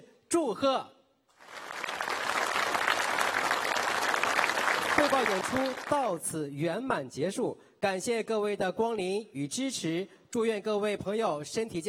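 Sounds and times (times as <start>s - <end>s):
speech: 0.3s - 1.0s, 5.0s - 11.8s
audience applause: 1.4s - 6.1s.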